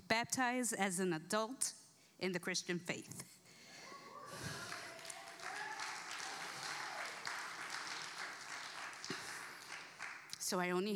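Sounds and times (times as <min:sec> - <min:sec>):
speech: 0:00.1 - 0:03.4, 0:10.5 - 0:10.9
crowd applause: 0:03.9 - 0:10.3.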